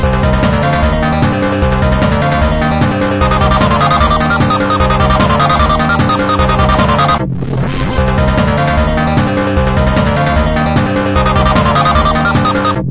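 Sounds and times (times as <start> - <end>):
chain link ringtone: 0.1 - 7.2, 8.0 - 12.8.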